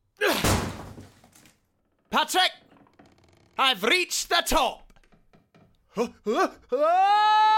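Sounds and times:
door being kicked: 0.4 - 1.2
speech: 2.2 - 2.6, 3.6 - 4.8, 6.0 - 7.4.

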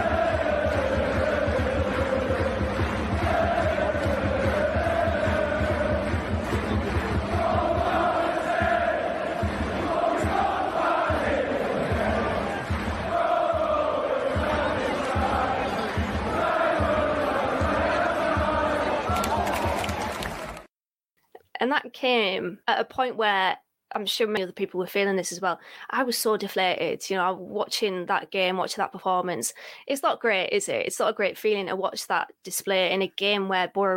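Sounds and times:
away football fans chanting in stadium: 0.0 - 20.6
rhythmic clapping or stamping: 0.0 - 20.7
speech: 22.0 - 33.9.

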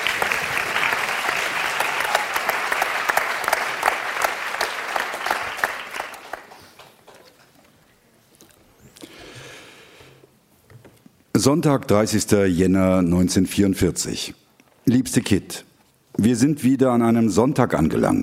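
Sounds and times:
applause: 0.0 - 7.2
speech: 11.4 - 18.2.

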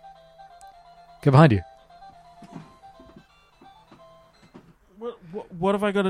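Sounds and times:
Kirby alarm clock going off: 0.0 - 4.7
speech: 1.2 - 1.7, 5.6 - 6.0.

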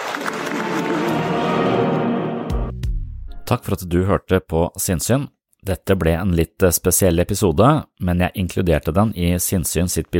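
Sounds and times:
audience applause: 0.0 - 2.5
speech: 3.5 - 10.1.

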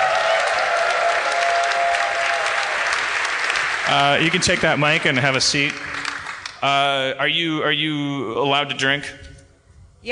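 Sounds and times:
audience applause: 0.0 - 6.8
speech: 3.9 - 9.3.

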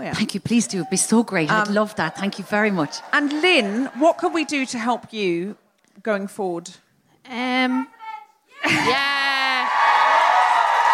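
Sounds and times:
speech: 0.1 - 7.9, 8.6 - 9.2
audience cheering and shouting encouragement at a live event: 1.6 - 5.0, 8.6 - 10.9.

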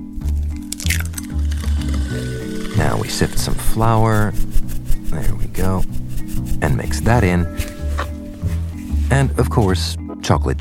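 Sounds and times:
eggs cracked into butter and sugar for baking: 0.2 - 6.6
speech: 3.0 - 4.5, 5.1 - 6.0, 6.6 - 7.7, 9.1 - 10.5.

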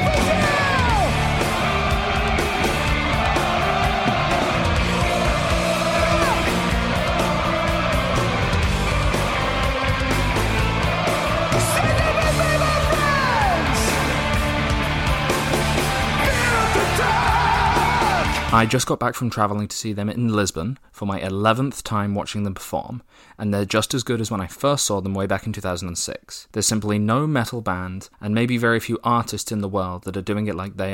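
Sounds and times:
concert crowd cheering at Rock in Rio: 0.0 - 18.7
speech: 18.6 - 30.9.

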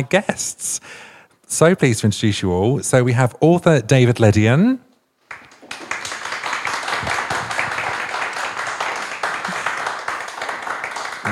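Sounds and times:
speech: 0.0 - 4.9
audience applause: 5.3 - 11.2.

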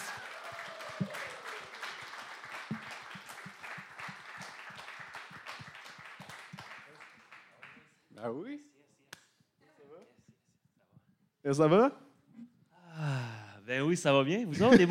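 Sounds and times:
audience applause: 0.0 - 7.8
speech: 8.2 - 8.7, 11.5 - 12.0, 13.8 - 14.8
laughter: 14.5 - 14.8.

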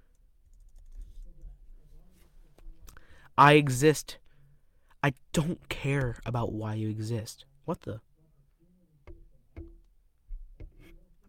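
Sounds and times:
typing on a computer keyboard into ChatGPT: 0.4 - 1.2
speech: 3.4 - 4.2, 5.0 - 8.1.

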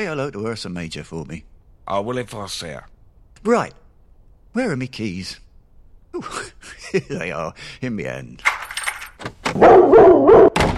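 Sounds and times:
speech: 0.0 - 3.8, 4.5 - 5.4, 6.1 - 8.6, 9.2 - 10.4
dog barking: 9.6 - 10.6.

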